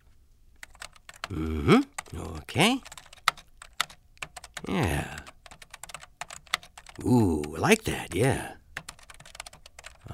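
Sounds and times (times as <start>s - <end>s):
keystrokes on a computer keyboard: 0.6s - 8.0s, 8.8s - 10.1s
speech: 1.3s - 1.9s, 2.5s - 3.0s, 7.1s - 8.6s.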